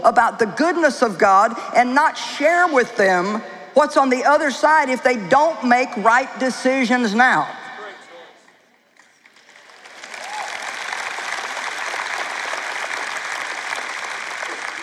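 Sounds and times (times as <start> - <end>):
speech: 0.0 - 7.6
audience applause: 9.2 - 14.8.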